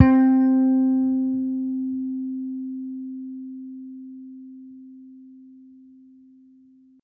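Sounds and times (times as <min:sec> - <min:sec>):
hard electric string bass note: 0:00.0 - 0:01.2.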